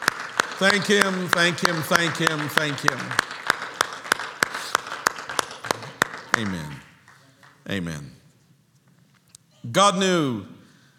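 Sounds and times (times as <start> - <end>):
church congregation clapping hands in praise: 0.0 - 8.0
speech: 0.6 - 3.4, 6.4 - 6.8, 7.7 - 8.2, 9.6 - 10.6.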